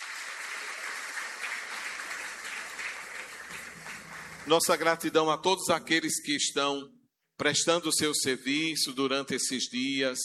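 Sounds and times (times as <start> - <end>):
audience applause: 0.0 - 5.2
speech: 4.5 - 10.2.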